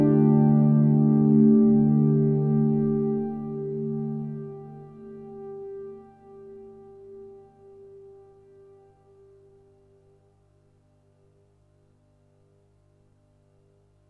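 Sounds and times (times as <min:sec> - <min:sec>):
soft synthesizer pad: 0:00.0 - 0:10.5.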